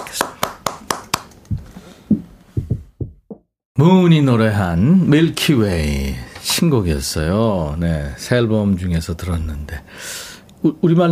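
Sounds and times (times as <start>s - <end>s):
applause: 0.0s - 1.3s
soft thumps: 1.5s - 3.5s
speech: 3.8s - 11.1s.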